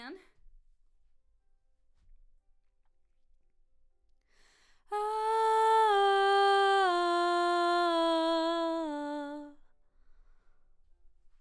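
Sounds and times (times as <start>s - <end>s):
background vocals: 4.9s - 9.6s.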